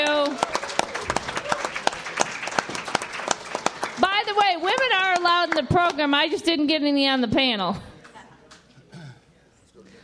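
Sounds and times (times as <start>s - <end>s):
audience applause: 0.0s - 5.5s
speech: 5.6s - 7.9s.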